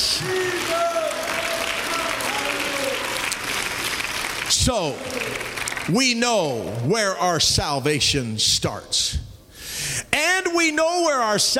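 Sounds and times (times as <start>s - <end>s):
audience clapping hands: 0.0s - 6.6s
speech: 4.7s - 9.3s, 10.2s - 11.5s.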